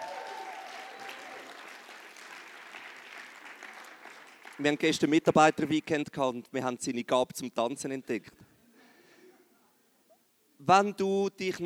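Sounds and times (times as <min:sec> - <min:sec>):
audience applause: 0:00.0 - 0:05.6
speech: 0:04.6 - 0:08.4, 0:10.7 - 0:11.6.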